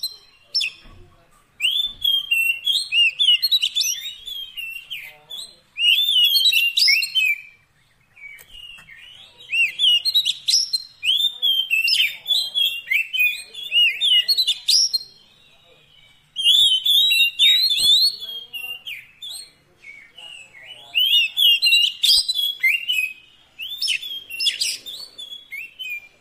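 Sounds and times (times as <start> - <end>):
Oriental magpie-robin singing: 0.0 - 1.0, 1.6 - 26.1.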